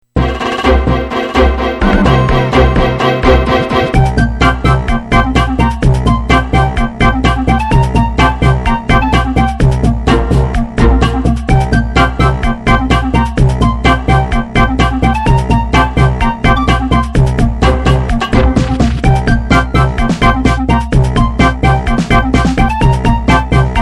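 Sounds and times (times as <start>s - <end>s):
Genesis chiptune music: 0.2s - 23.7s.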